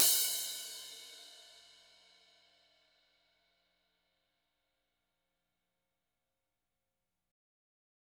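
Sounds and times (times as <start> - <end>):
cymbal: 0.0 - 2.9.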